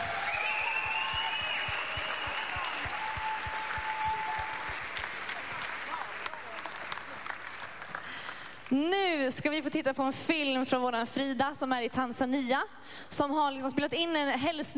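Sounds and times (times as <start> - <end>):
audience applause for a choir: 0.0 - 8.7
speech: 8.7 - 14.7.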